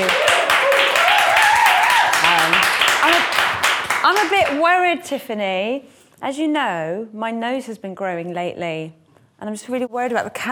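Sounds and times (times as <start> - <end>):
audience applause: 0.0 - 4.6
speech: 4.1 - 10.5.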